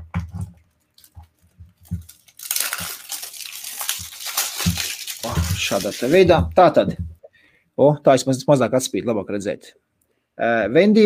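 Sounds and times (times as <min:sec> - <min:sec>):
opening cardboard product packaging: 0:00.4 - 0:06.3
speech: 0:05.2 - 0:07.1, 0:07.8 - 0:09.8, 0:10.4 - 0:11.0.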